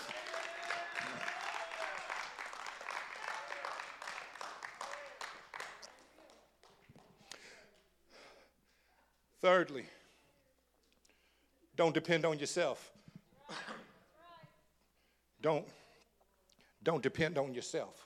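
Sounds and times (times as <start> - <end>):
audience clapping in praise: 0.0 - 7.9
speech: 9.4 - 10.0, 11.8 - 13.0, 15.4 - 15.8, 16.8 - 18.0.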